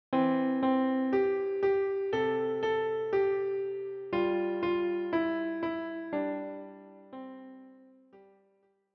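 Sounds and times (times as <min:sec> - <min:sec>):
piano: 0:00.1 - 0:08.5.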